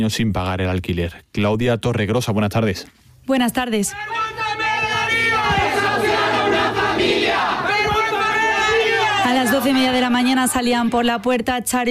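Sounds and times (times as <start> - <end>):
speech: 0.0 - 4.6, 9.5 - 11.9
protesters shouting condemnation at eviction: 3.9 - 11.4.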